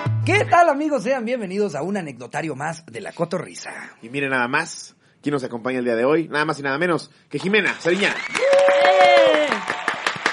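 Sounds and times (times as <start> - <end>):
speech: 0.2 - 9.5
audience clapping: 7.6 - 10.3
person cheering: 8.2 - 10.0.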